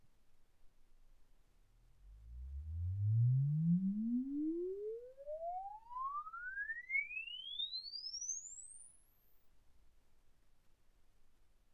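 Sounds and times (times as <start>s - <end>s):
exponential sine sweep from 10 Hz to 24 kHz: 2.1s - 9.8s.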